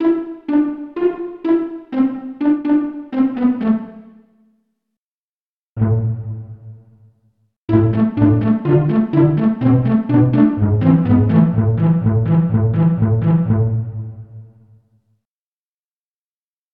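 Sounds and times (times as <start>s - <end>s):
pizzicato section: 0.0s - 4.2s, 5.8s - 6.8s, 7.7s - 14.2s.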